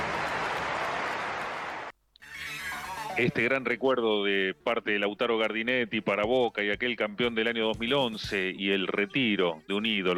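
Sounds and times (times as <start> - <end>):
audience applause: 0.0 - 1.9
speech: 3.2 - 10.1.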